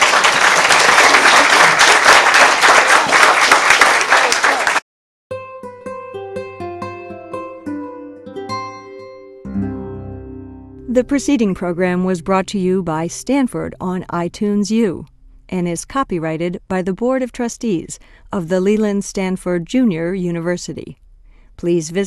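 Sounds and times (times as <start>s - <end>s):
audience applause for panelists: 0.0s - 4.8s
gentle piano music: 5.6s - 12.0s
speech: 11.0s - 21.0s, 21.6s - 22.0s.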